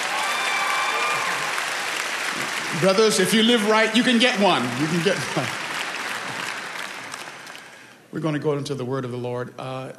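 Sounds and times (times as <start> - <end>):
church congregation clapping during a service: 0.0 - 8.0
speech: 2.7 - 5.6, 8.1 - 9.9.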